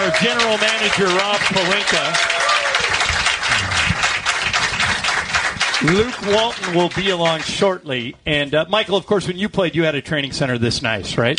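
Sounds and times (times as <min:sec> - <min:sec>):
studio audience applauding at a Lakers team event: 0:00.0 - 0:08.0
speech: 0:00.2 - 0:02.9, 0:05.8 - 0:11.3.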